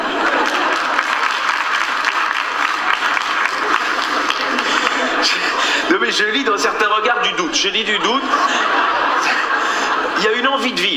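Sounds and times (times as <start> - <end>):
audience applause: 0.0 - 5.9
laughter: 0.0 - 10.9
speech: 6.2 - 9.3, 10.2 - 10.9.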